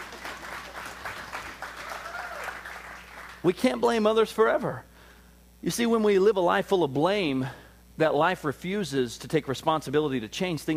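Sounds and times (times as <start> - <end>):
audience clapping: 0.0 - 3.6
speech: 3.4 - 4.9, 5.6 - 10.7.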